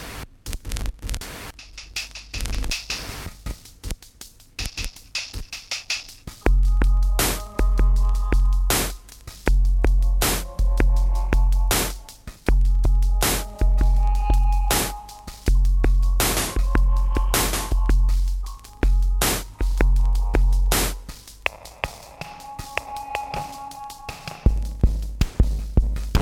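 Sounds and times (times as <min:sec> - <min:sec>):
damaged drums: 0:00.0 - 0:26.1.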